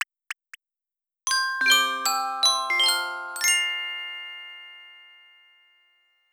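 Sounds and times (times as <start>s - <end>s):
birthday jingle: 1.3s - 6.3s.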